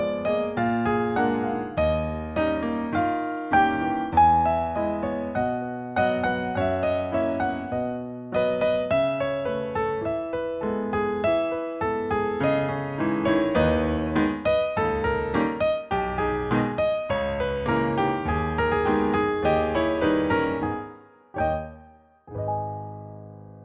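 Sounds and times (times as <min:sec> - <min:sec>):
ballet barre music for battements tendus and glissés: 0:00.1 - 0:10.3, 0:11.3 - 0:23.6.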